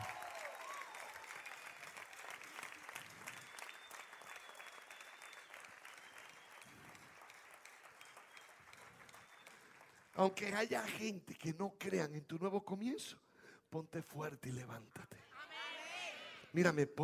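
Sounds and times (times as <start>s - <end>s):
audience applause: 0.0s - 10.5s
speech: 10.2s - 15.2s, 16.5s - 17.0s.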